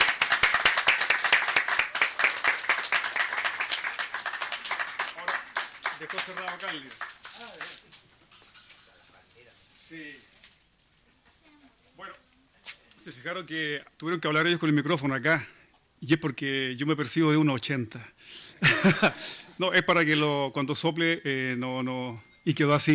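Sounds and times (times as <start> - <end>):
audience applause welcoming a musician: 0.0 - 7.8
speech: 6.0 - 7.9, 9.9 - 10.3, 13.0 - 22.9
laughter: 18.6 - 19.4.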